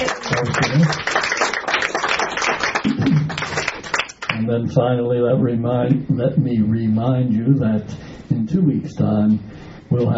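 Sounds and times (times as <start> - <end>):
crowd applauding: 0.0 - 4.3
speech: 4.5 - 10.1.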